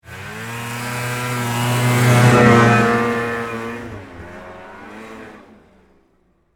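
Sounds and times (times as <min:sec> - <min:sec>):
Yamaha Exciter 440 snowmobile passing fast: 0:00.0 - 0:06.1.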